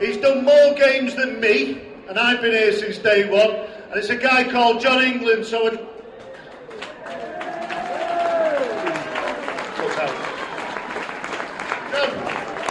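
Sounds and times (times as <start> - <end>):
speech: 0.0 - 5.9
audience applause at a sports club gathering: 6.2 - 12.6.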